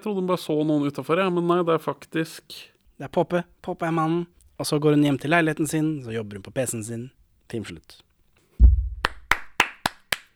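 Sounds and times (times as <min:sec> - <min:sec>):
speech: 0:00.0 - 0:08.8
dull low thump: 0:08.6 - 0:09.3
hand claps from co-hosts: 0:09.0 - 0:10.3.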